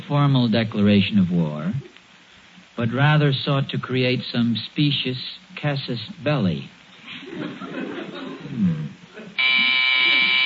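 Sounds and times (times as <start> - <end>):
speech: 0.1 - 1.9, 2.8 - 7.8
laughter: 7.0 - 10.4
doorbell buzzer ringing: 9.4 - 10.4.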